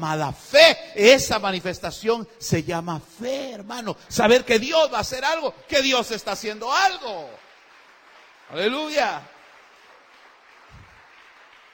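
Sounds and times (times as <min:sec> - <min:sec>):
speech: 0:00.0 - 0:07.4, 0:08.5 - 0:09.3
audience applause: 0:06.6 - 0:11.7.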